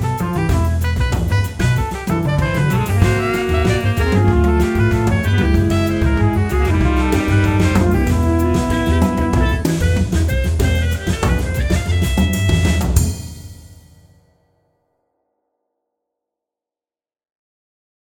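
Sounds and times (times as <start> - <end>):
late night jazz alto groove: 0.0 - 13.9.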